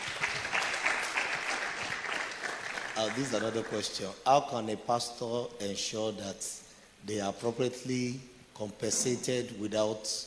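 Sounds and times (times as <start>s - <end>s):
applause from many hands at a gathering on pastoral ministry: 0.0s - 3.9s
speech: 3.0s - 10.2s.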